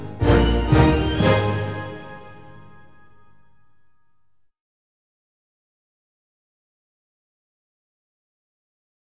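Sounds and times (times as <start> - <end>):
orchestral comical march: 0.0 - 3.5.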